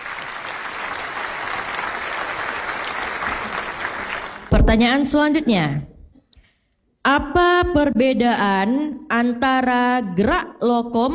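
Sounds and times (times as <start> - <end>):
studio audience applause at a quiz show: 0.0 - 4.6
speech: 4.6 - 5.9, 7.1 - 11.1.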